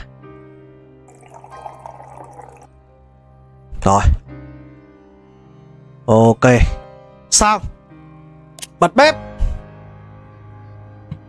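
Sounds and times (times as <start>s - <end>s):
red wine and soy sauce poured into a dish while cooking: 1.1s - 2.7s
speech: 3.8s - 4.2s, 6.1s - 6.8s, 7.4s - 7.7s, 8.8s - 9.2s.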